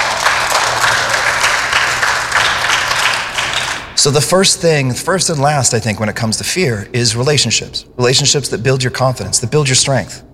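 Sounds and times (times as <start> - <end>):
audience applause: 0.0 - 3.9
speech: 4.0 - 10.3.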